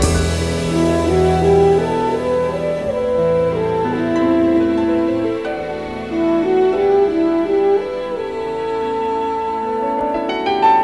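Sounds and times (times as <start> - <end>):
sad string loops: 0.0 - 10.6.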